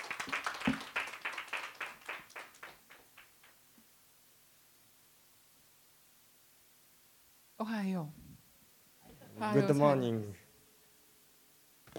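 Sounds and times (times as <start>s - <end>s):
audience clapping to welcome speaker: 0.0s - 3.6s
speech: 7.6s - 8.2s, 9.4s - 10.4s.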